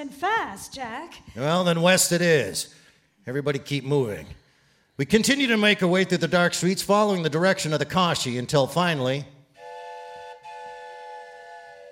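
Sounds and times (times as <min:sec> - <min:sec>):
speech: 0:00.0 - 0:04.4, 0:05.0 - 0:09.4
train whistle: 0:09.6 - 0:11.8.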